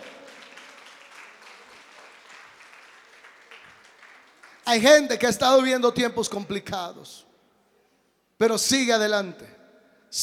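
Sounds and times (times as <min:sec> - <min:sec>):
audience applauding: 0:00.0 - 0:04.8
speech: 0:04.7 - 0:07.3, 0:08.4 - 0:10.2.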